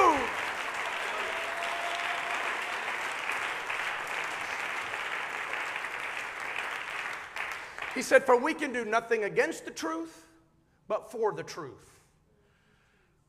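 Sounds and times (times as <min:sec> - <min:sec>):
audience clapping hands: 0:00.0 - 0:08.4
speech: 0:08.0 - 0:10.2, 0:10.9 - 0:12.0.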